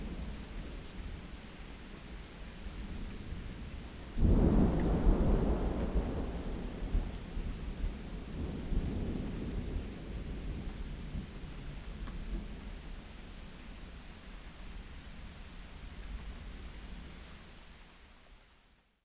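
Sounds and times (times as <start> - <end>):
active thunderstorm: 2.7 - 12.6.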